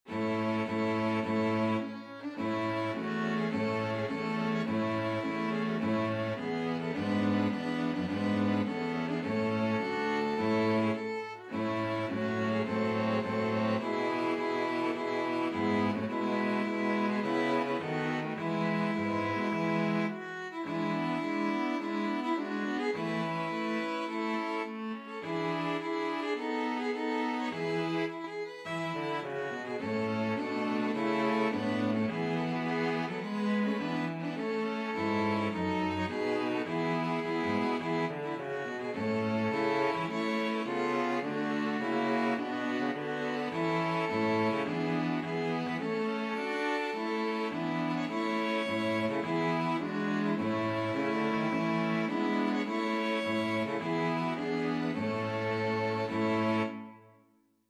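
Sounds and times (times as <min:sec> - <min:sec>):
string quartet playing a national anthem: 0:00.0 - 0:57.1.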